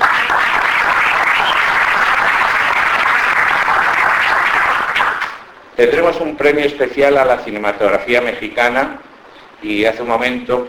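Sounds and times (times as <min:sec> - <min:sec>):
audience applause: 0:00.0 - 0:05.4
speech: 0:05.8 - 0:10.6.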